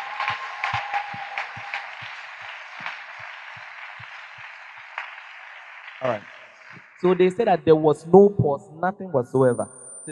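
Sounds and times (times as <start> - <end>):
audience clapping: 0.0 - 7.6
speech: 6.0 - 6.3, 7.0 - 10.1.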